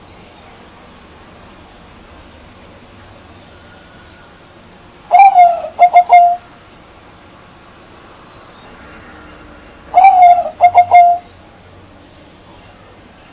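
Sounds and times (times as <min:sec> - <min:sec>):
bird call: 0:05.1 - 0:06.5, 0:09.9 - 0:11.5.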